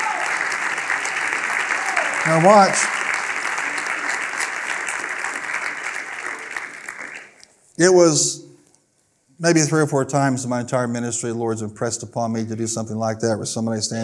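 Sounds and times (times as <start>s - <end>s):
audience hand clapping: 0.0s - 7.6s
speech: 2.3s - 3.0s, 7.8s - 8.4s, 9.4s - 14.0s.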